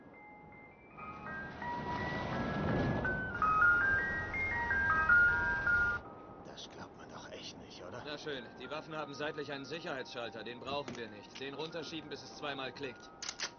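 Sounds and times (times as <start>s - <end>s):
ice cream truck jingle: 0.0s - 6.5s, 8.0s - 13.5s
speech: 8.2s - 13.2s.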